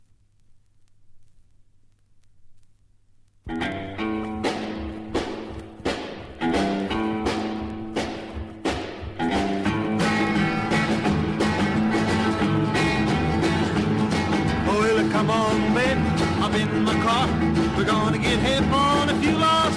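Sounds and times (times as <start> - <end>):
hot guitars: 3.5 - 19.7.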